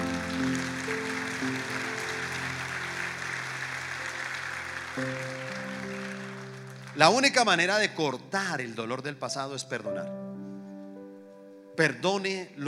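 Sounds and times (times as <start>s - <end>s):
audience applause: 0.0s - 7.8s
speech: 7.0s - 10.2s, 11.8s - 12.6s.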